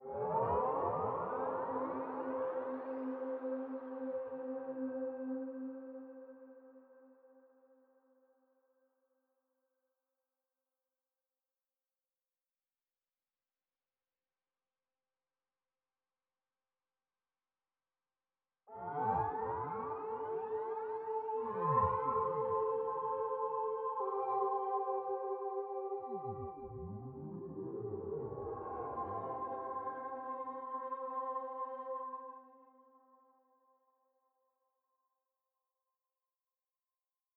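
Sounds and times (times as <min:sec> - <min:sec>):
cetacean meditation music: 0:00.0 - 0:08.0, 0:18.7 - 0:33.6.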